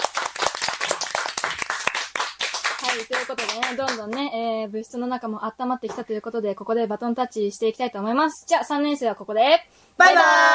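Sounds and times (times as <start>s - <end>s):
small group clapping hands: 0.0s - 4.3s
speech: 3.0s - 10.5s.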